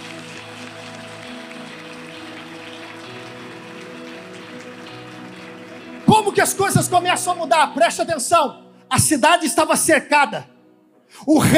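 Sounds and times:
audience clapping: 0.0s - 8.1s
low sustained musical tones: 0.0s - 9.0s
speech: 6.2s - 10.5s, 11.1s - 11.5s.

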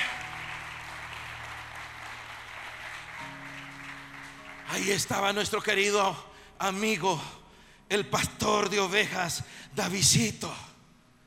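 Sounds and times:
audience clapping loudly: 0.0s - 6.0s
speech: 4.8s - 10.7s.

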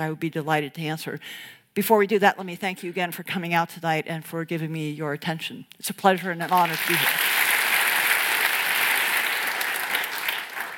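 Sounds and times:
speech: 0.0s - 7.4s
audience applause after a lecture: 6.6s - 10.7s.

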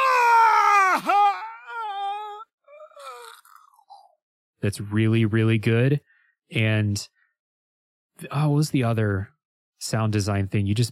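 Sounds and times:
video game enemy gurgling death scream: 0.0s - 3.4s
speech: 4.6s - 7.2s, 8.2s - 10.9s.

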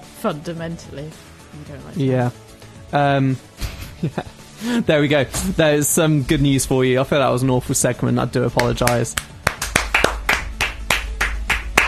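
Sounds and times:
speech: 0.2s - 9.3s
people clapping: 8.5s - 11.8s.

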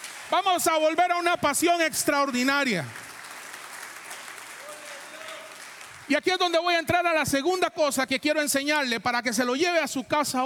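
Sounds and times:
audience applauding: 0.0s - 6.6s
speech: 0.3s - 3.0s, 6.1s - 10.4s.

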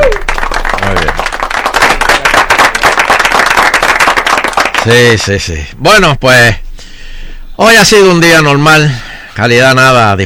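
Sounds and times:
person whooping: 0.0s - 0.4s
applause: 0.0s - 5.5s
speech: 4.8s - 6.6s, 7.6s - 10.2s.

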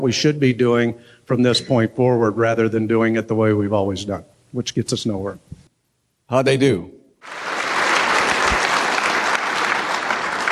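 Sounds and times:
speech: 0.0s - 5.5s, 6.3s - 7.5s
audience applause: 7.2s - 10.4s.

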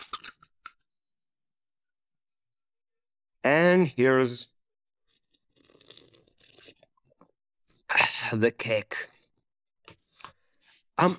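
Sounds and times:
drink can pull tab pop and hiss: 0.0s - 0.8s
speech: 3.7s - 4.6s, 8.3s - 9.1s, 11.0s - 11.1s.

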